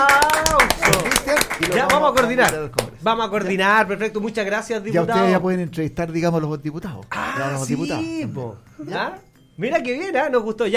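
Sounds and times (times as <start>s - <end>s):
audience applause: 0.0s - 2.9s
speech: 1.6s - 10.7s.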